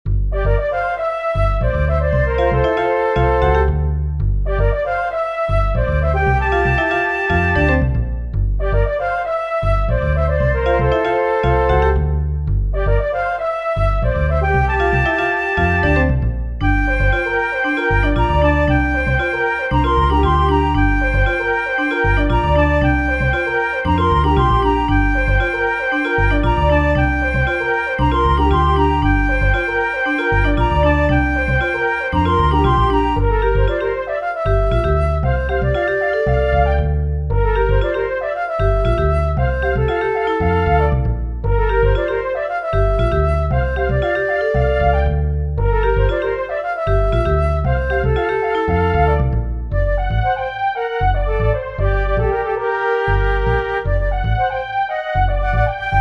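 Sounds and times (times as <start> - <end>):
funk music: 0.1 - 55.9.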